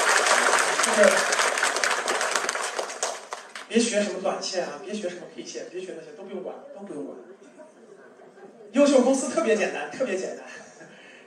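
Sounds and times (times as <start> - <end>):
applause: 0.0 - 4.0
speech: 0.9 - 1.4, 3.7 - 7.5, 8.7 - 10.6.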